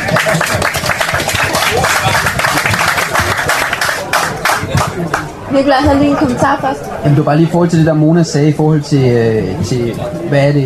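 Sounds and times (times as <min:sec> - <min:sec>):
audience clapping: 0:00.0 - 0:05.3
speech: 0:05.6 - 0:10.6.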